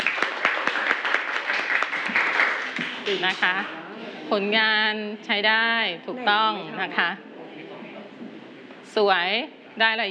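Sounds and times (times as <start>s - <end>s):
class clapping hands: 0.0s - 3.7s
speech: 3.1s - 7.3s, 9.0s - 10.1s.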